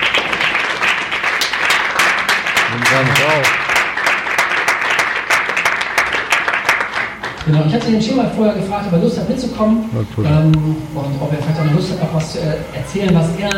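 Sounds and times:
audience applause: 0.0 - 7.6
speech: 2.8 - 3.6, 7.5 - 13.5.

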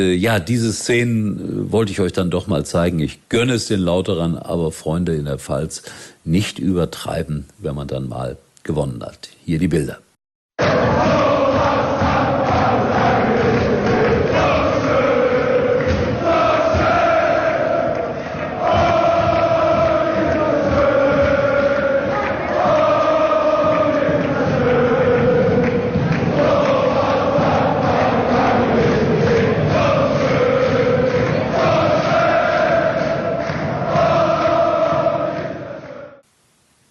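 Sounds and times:
speech: 0.0 - 10.0
football fans cheering after a win in Kaiserslautern: 10.6 - 36.2.

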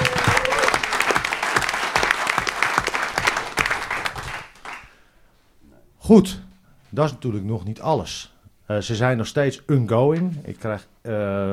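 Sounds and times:
audience applause: 0.0 - 5.0
speech: 6.1 - 11.5.

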